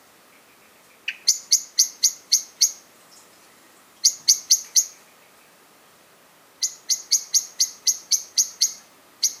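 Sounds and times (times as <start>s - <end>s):
common blackbird Turdus merula giving sharp metallic chink calls: 0.3s - 5.6s, 6.6s - 9.3s.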